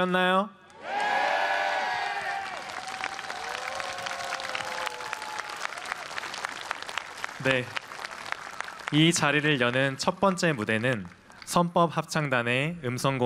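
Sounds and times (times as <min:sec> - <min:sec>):
speech: 0:00.0 - 0:01.0, 0:07.4 - 0:07.8, 0:08.9 - 0:13.2
loud cheers and high whoops: 0:00.8 - 0:06.3
crowd clapping: 0:01.8 - 0:11.7.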